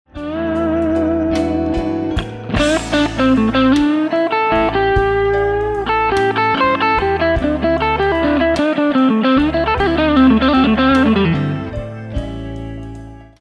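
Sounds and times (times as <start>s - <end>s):
guitar blues lick: 0.1s - 13.4s.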